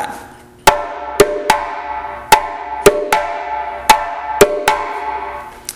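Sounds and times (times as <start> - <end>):
hand drum slap tones: 0.7 - 5.2.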